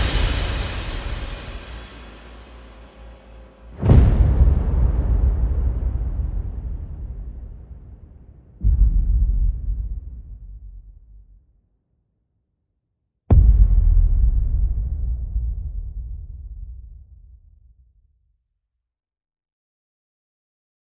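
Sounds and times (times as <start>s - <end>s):
percussion: 0.0s - 11.5s, 13.3s - 18.3s.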